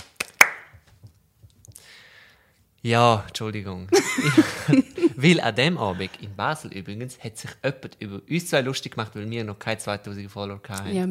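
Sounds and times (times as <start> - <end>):
quick sharp hand claps: 0.0 - 0.9
speech: 2.8 - 11.0
laughter: 4.0 - 6.2.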